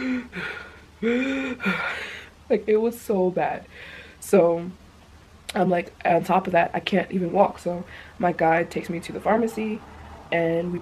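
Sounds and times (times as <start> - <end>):
person imitating labored, struggling breathing: 0.0 - 2.3
speech: 1.0 - 4.8, 5.5 - 10.7.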